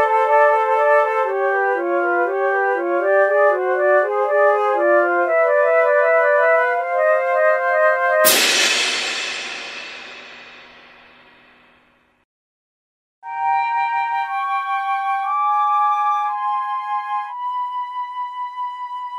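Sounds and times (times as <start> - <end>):
flutes playing: 0.0 - 8.4, 13.2 - 19.1.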